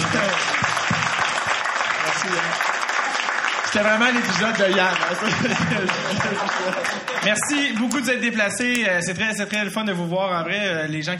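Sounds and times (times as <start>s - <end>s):
laughter: 0.0s - 8.0s
applause from a small group: 0.0s - 8.7s
speech: 3.8s - 11.1s.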